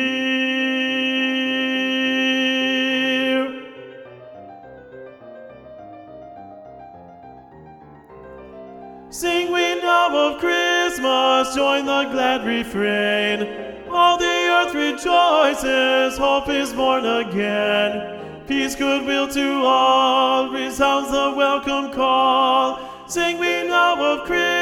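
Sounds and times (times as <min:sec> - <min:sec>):
alto voice singing a Christmas carol for SSA choir: 0:00.0 - 0:04.1, 0:09.1 - 0:24.6.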